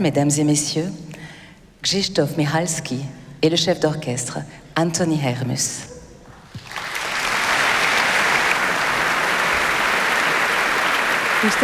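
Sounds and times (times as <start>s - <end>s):
speech: 0.0s - 1.1s, 1.8s - 5.9s, 11.4s - 11.6s
audience and musicians applauding a soloist: 6.4s - 11.6s.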